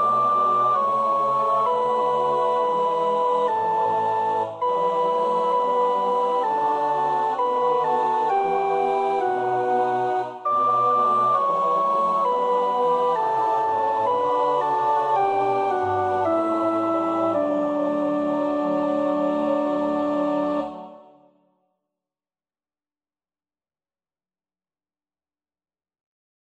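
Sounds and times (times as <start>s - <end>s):
soprano singing: 0.0s - 21.2s.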